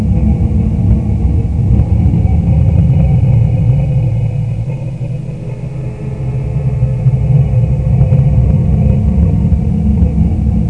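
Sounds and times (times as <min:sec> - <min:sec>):
eerie vocal moan: 0:00.0 - 0:10.6.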